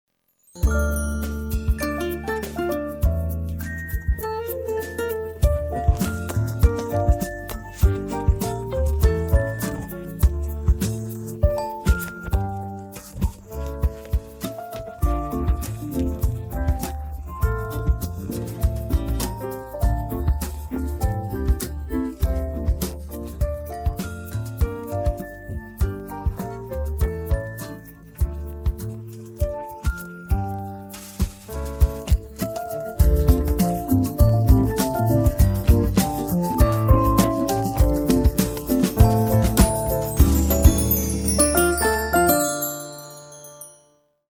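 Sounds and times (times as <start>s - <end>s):
Christmas music: 0.4s - 44.3s.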